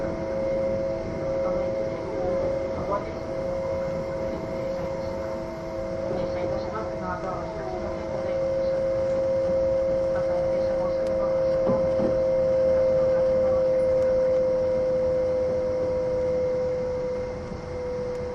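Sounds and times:
E261 series Saphir Odoriko train rumble: 0.0 - 18.3
constant mid-pitched whine: 0.0 - 18.3
murmur of voices: 1.0 - 14.4.

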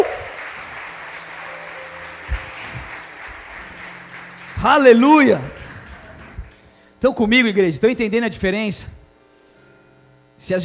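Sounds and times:
audience applause: 0.0 - 6.7
speech: 4.6 - 5.6, 7.0 - 9.0, 10.4 - 10.6.

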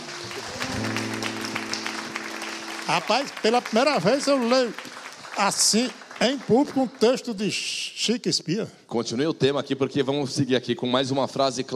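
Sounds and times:
group clapping: 0.0 - 7.4
speech: 2.9 - 11.7.

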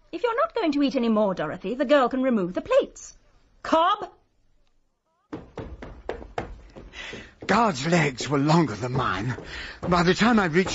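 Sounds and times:
speech: 0.1 - 4.2, 7.1 - 10.7
vigorous hammering on a bathroom door: 5.3 - 7.7, 8.7 - 10.7.

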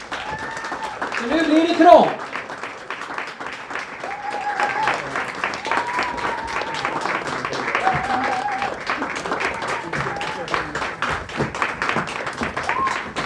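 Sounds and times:
audience applause as contestants enter stage: 0.0 - 13.2
speech: 1.2 - 2.2.

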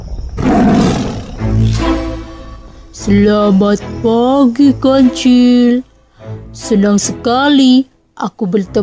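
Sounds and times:
lion roaring: 0.4 - 2.2
speech: 3.1 - 8.8.

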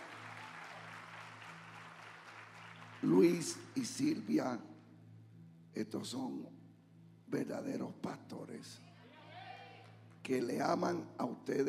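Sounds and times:
audience applause: 0.0 - 4.0
speech: 3.0 - 4.7, 5.8 - 6.6, 7.3 - 8.9, 10.3 - 11.6.

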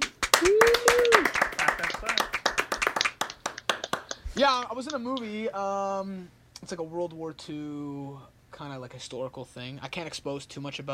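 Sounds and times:
people clapping: 0.0 - 5.3
speech: 4.4 - 10.9.

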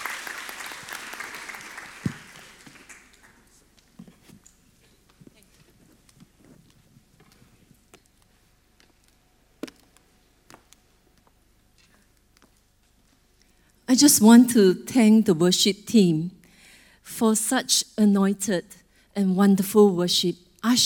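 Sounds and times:
church congregation clapping to welcome a reverend: 0.0 - 3.9
speech: 13.9 - 16.4, 17.2 - 20.8.

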